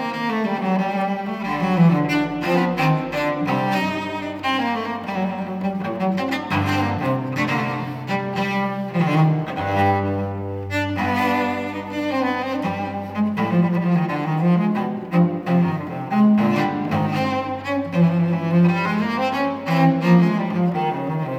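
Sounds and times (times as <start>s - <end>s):
solo cello courante in C minor: 0.0s - 21.3s.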